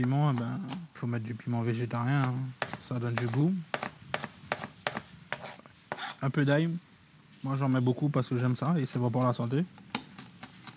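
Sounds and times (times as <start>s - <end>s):
knife chopping onion into dice: 0.0s - 0.9s, 2.2s - 6.1s
speech: 0.0s - 3.9s, 6.2s - 9.8s.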